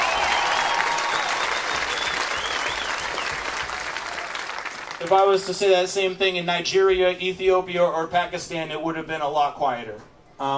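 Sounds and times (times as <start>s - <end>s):
graduation crowd clapping: 0.0s - 5.7s
speech: 5.0s - 10.5s.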